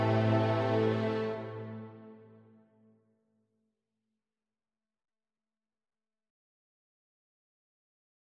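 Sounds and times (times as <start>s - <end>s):
instrumental music: 0.0s - 2.6s.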